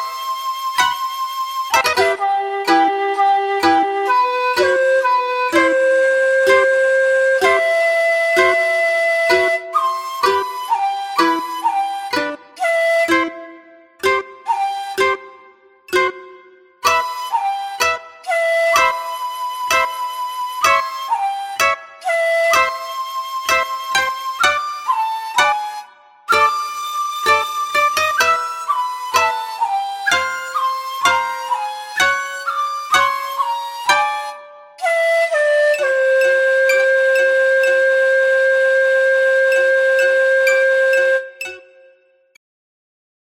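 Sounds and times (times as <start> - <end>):
shakuhachi: 0.0 - 16.2, 16.8 - 42.1
koto: 0.0 - 42.4
shamisen: 0.0 - 42.4.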